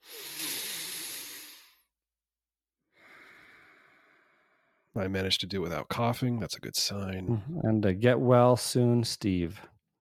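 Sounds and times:
deep breath: 0:00.0 - 0:01.9, 0:02.9 - 0:04.9
speech: 0:05.0 - 0:09.7.

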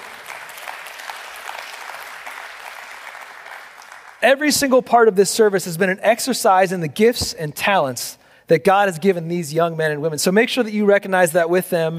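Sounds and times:
audience applauding: 0:00.0 - 0:04.2
speech: 0:04.2 - 0:11.9.

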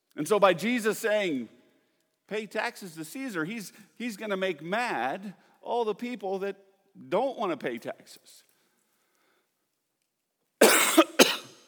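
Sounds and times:
speech: 0:00.2 - 0:01.6, 0:02.3 - 0:08.4
person coughing from a tickle in the throat: 0:10.6 - 0:11.6.

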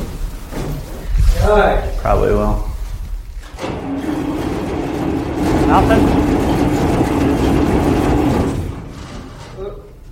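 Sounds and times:
speech: 0:01.5 - 0:02.7, 0:05.7 - 0:06.4
engine cranking after weeks unused: 0:03.4 - 0:09.6.

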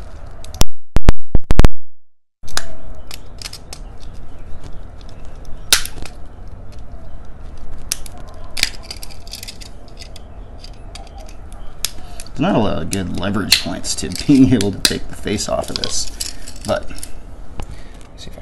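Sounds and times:
scattered clicks and crackles: 0:00.0 - 0:01.7, 0:02.4 - 0:18.1
standard electrical plug being ripped apart by hand: 0:02.5 - 0:15.0
speech: 0:12.4 - 0:17.1.

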